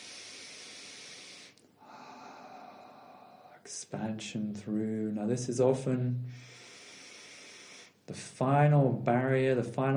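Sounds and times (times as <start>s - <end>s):
deep breathing from the back of the throat: 0.0s - 3.8s, 6.2s - 8.1s
speech: 3.6s - 6.6s, 8.1s - 9.9s.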